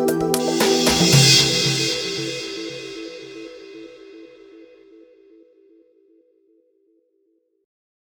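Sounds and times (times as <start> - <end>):
industrial music without melody: 0.2 - 3.9.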